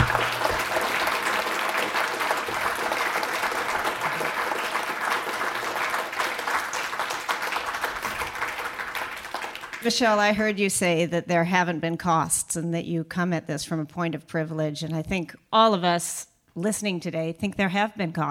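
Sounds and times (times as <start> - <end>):
audience applause: 0.0 - 9.8
speech: 9.9 - 18.2.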